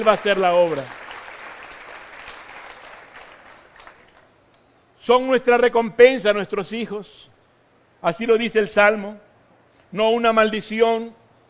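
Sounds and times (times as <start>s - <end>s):
speech: 0.0s - 1.0s, 5.0s - 7.3s, 8.0s - 9.3s, 9.9s - 11.2s
audience applause: 0.0s - 4.3s.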